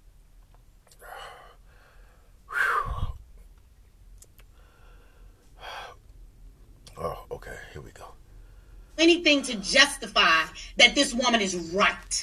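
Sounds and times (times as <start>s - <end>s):
man gasping for breath after choking: 1.0s - 3.2s
speech: 9.0s - 12.2s.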